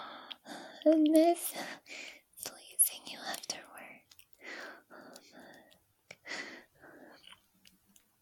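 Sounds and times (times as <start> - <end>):
soft whispering: 0.7 - 4.3
speech: 0.8 - 1.9.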